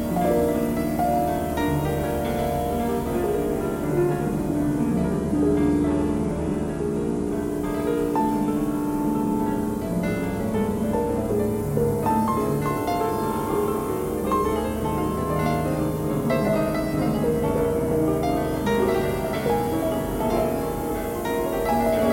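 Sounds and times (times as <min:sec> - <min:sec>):
piano: 0:00.0 - 0:22.1
thread noise: 0:00.0 - 0:22.1.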